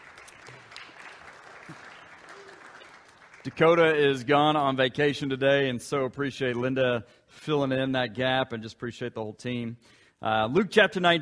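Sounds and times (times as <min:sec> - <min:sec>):
audience applause: 0:00.0 - 0:04.1
speech: 0:03.4 - 0:11.2.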